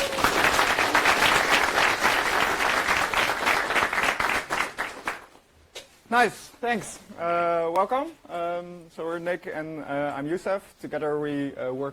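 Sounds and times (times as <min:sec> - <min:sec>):
audience round of applause: 0:00.0 - 0:05.3
speech: 0:06.1 - 0:11.9.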